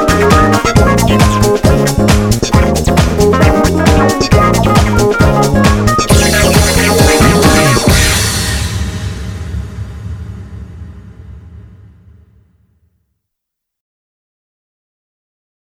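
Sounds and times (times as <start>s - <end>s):
rough instrumental music: 0.0s - 9.4s.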